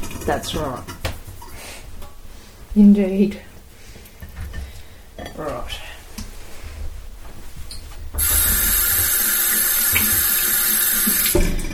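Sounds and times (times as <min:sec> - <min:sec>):
speech: 0:00.2 - 0:01.0, 0:02.8 - 0:03.5, 0:05.4 - 0:05.8
tap water running: 0:08.2 - 0:11.7.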